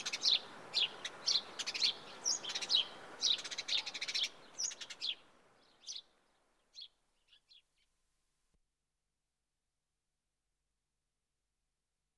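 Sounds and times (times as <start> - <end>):
house sparrow Passer domesticus giving bright chirps: 0.0 - 5.2.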